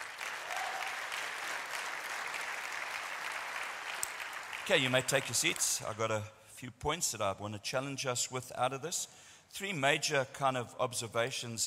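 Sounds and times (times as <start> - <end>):
audience applause: 0.0 - 5.7
speech: 4.7 - 11.6.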